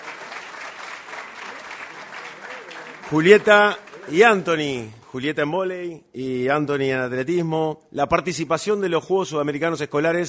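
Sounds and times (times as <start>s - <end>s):
audience applause: 0.0s - 4.8s
speech: 3.1s - 10.2s.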